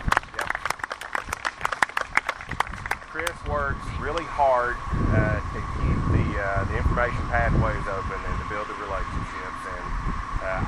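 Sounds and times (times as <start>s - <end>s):
audience applause: 0.0s - 3.4s
speech: 3.5s - 10.6s.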